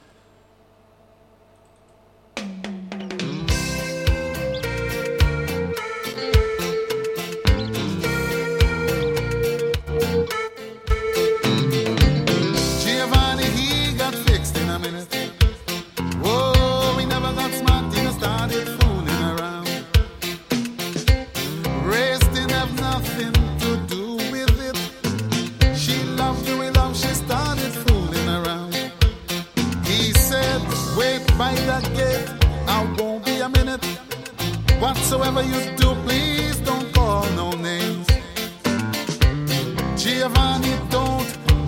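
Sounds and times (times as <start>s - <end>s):
upbeat pop song with driving drum beat: 3.2s - 41.6s.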